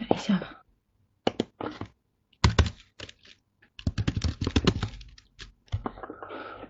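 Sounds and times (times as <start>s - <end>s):
speech: 0.2s - 0.6s
typing on a computer keyboard: 2.4s - 5.8s.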